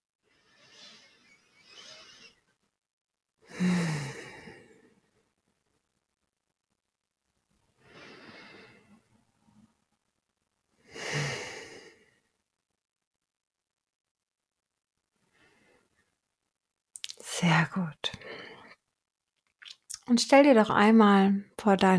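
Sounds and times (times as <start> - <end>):
slow deep breaths during a guided relaxation exercise: 3.4 - 5.3, 7.7 - 9.2, 10.8 - 12.4, 15.2 - 16.1, 18.2 - 18.8
speech: 17.4 - 18.4, 20.1 - 21.9.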